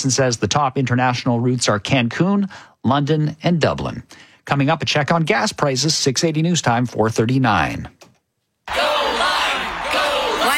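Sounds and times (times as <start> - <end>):
speech: 0.0 - 8.0
crowd cheering, whooping and yelling in a radio advert: 8.7 - 10.5.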